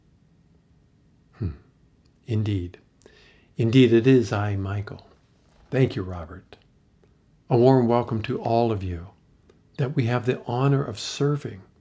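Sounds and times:
speech: 1.4s - 1.6s, 2.3s - 2.8s, 3.6s - 5.1s, 5.7s - 6.6s, 7.5s - 9.2s, 9.8s - 11.7s
deep breath: 3.0s - 3.6s.

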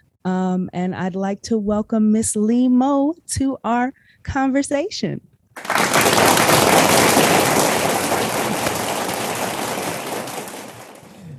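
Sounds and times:
speech: 0.2s - 6.3s
applause sound effect: 5.6s - 11.3s.

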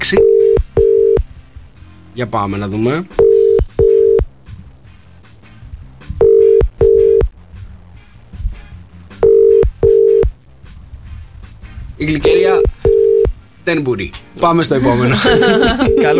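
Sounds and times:
faint low hum: 0.0s - 4.9s, 5.5s - 16.1s
speech: 0.1s - 0.3s, 2.2s - 3.2s, 12.0s - 12.7s, 13.7s - 16.1s
telephone ringback tone for an unanswered call: 0.1s - 1.2s, 3.2s - 4.2s, 6.2s - 7.3s, 9.2s - 10.3s, 12.6s - 13.4s
laughter: 14.8s - 16.1s.

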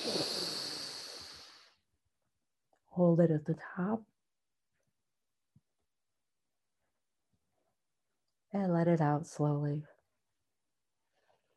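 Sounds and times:
quick breath in: 0.0s - 1.7s
speech: 3.0s - 4.1s, 8.6s - 9.9s.

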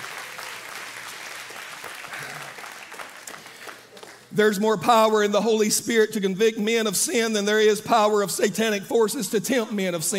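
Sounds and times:
crowd applause, hands clapping: 0.0s - 4.3s
speech: 4.4s - 10.1s.

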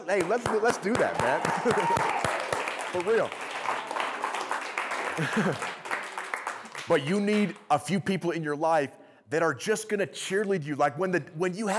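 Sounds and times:
applause: 0.0s - 7.6s
speech: 0.1s - 3.9s, 5.2s - 5.8s, 6.9s - 11.7s
laughter: 1.2s - 2.1s, 5.0s - 5.9s.

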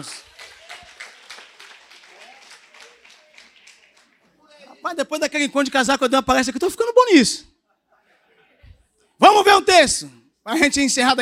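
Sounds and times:
speech: 0.0s - 0.3s, 4.8s - 7.5s, 9.8s - 11.2s
audience applause: 0.0s - 4.5s.

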